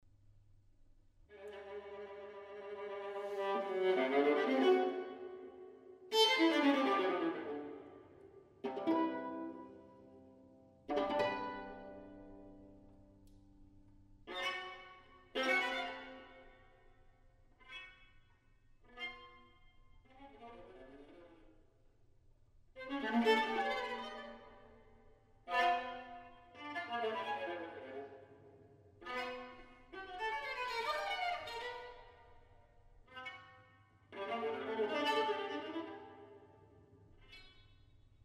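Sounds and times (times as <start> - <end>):
string quartet: 1.3 - 10.2, 10.8 - 13.4, 14.2 - 16.7, 22.7 - 28.4, 29.0 - 36.5.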